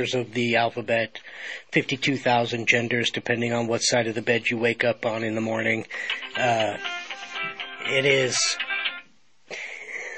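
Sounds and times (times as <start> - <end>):
speech: 0.0 - 8.7
phone ringing: 6.0 - 9.1.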